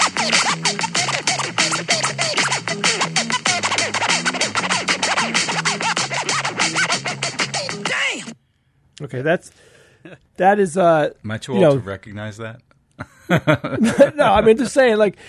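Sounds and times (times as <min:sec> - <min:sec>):
vinyl record scratching: 0:00.0 - 0:08.4
speech: 0:09.1 - 0:15.2
laughter: 0:13.0 - 0:14.8.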